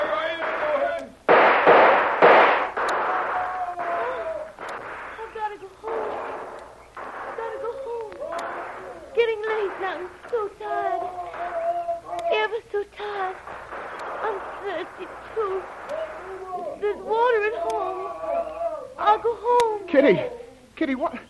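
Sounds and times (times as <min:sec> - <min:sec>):
gunfire shots: 0:00.0 - 0:18.0
voices speaking and shouting: 0:00.0 - 0:21.2.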